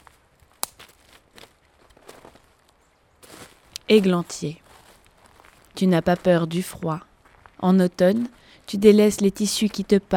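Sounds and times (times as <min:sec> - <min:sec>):
footsteps in leaves: 0:00.0 - 0:06.4
wind: 0:00.0 - 0:10.1
speech: 0:03.9 - 0:04.6, 0:05.8 - 0:10.1.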